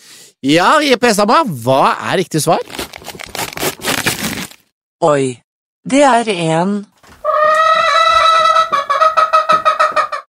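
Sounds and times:
speech: 0:00.4 - 0:02.8, 0:05.0 - 0:06.9
real hen clucking: 0:07.2 - 0:10.3.

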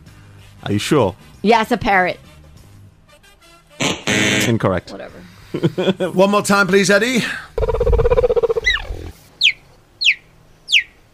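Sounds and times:
speech: 0:00.6 - 0:02.3, 0:04.5 - 0:08.3
cheetah call: 0:07.6 - 0:11.0.

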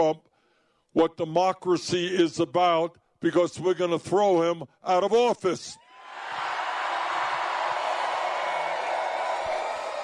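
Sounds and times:
speech: 0:00.0 - 0:00.3, 0:00.9 - 0:06.4
people cheering: 0:05.9 - 0:10.0.

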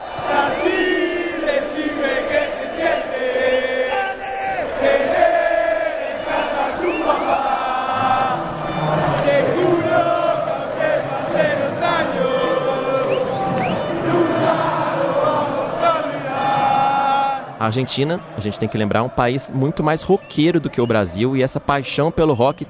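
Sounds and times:
Argentine football fans chanting a song: 0:00.0 - 0:22.6
speech: 0:17.7 - 0:22.6.

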